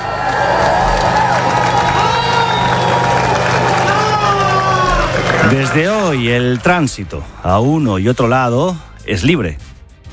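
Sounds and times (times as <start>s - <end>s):
large crowd cheering and shouting at border opening: 0.0s - 6.8s
speech: 5.6s - 9.8s.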